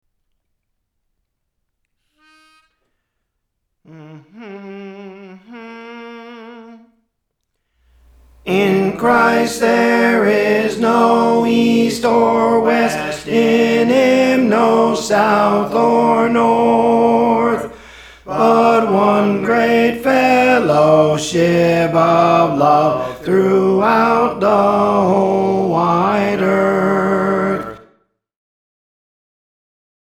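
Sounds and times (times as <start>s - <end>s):
tenor singing: 3.9s - 7.0s, 8.1s - 27.9s.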